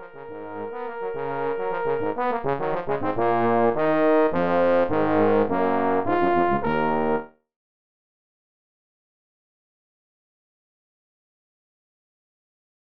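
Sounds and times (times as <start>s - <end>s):
two trombones playing a festive short fanfare: 0.0s - 7.3s.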